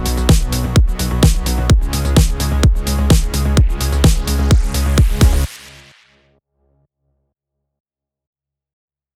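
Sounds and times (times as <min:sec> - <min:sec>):
electro music bed in D sharp minor at 128 BPM: 0:00.0 - 0:06.1.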